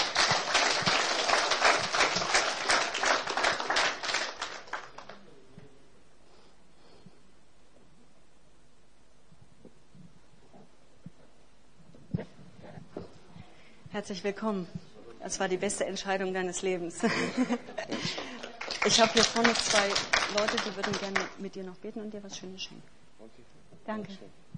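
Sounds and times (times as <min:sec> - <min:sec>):
audience applause: 0:00.0 - 0:05.3, 0:18.0 - 0:21.4
speech: 0:14.0 - 0:17.7, 0:18.9 - 0:24.4.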